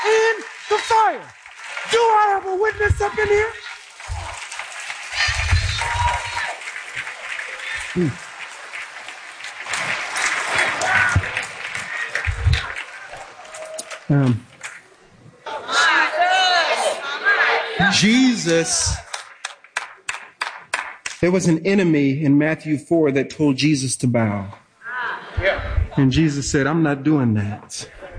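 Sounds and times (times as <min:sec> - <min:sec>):
church congregation cheering, clapping and shouting: 0:00.0 - 0:14.8, 0:15.4 - 0:21.3
speech: 0:00.7 - 0:03.6, 0:08.0 - 0:08.2, 0:14.1 - 0:14.5, 0:18.0 - 0:19.0, 0:21.2 - 0:24.6, 0:25.4 - 0:28.0.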